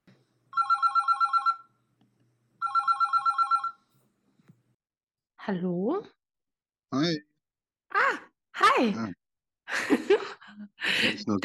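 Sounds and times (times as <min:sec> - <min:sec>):
phone ringing: 0:00.5 - 0:01.8, 0:02.6 - 0:03.9
speech: 0:05.5 - 0:06.2, 0:06.9 - 0:07.3, 0:08.8 - 0:11.4.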